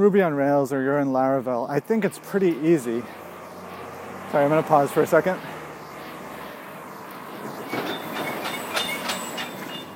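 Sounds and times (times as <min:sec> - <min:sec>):
speech: 0:00.0 - 0:03.2, 0:04.3 - 0:05.5
truck rolling past: 0:01.8 - 0:09.9
faint high whine: 0:02.4 - 0:09.9
rattling clanks: 0:07.5 - 0:09.9.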